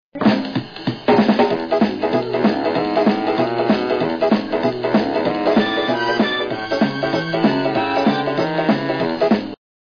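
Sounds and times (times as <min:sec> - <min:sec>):
rhythmic beat: 0:00.2 - 0:09.6.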